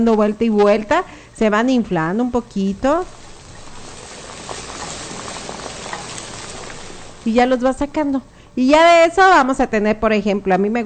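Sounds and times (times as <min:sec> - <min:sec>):
speech: 0:00.0 - 0:03.2, 0:07.2 - 0:10.8
food frying in hot oil: 0:01.6 - 0:08.0.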